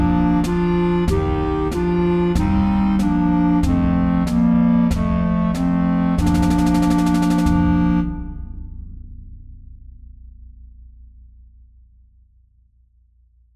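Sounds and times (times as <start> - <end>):
march music: 0.0 - 8.7.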